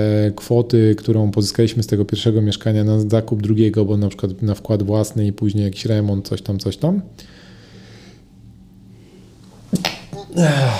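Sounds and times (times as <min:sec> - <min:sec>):
speech: 0:00.0 - 0:07.4, 0:09.7 - 0:10.7
sneeze: 0:09.8 - 0:10.7.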